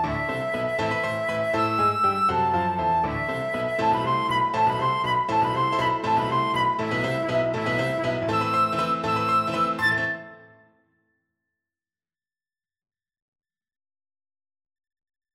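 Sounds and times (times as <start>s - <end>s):
flute playing a scherzo: 0.0s - 10.7s.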